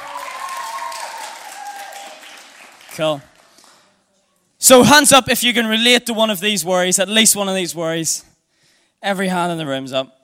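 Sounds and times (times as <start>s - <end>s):
people cheering: 0.0s - 3.1s
audience clapping: 0.0s - 4.0s
speech: 3.0s - 3.3s, 4.6s - 8.3s, 9.0s - 10.2s.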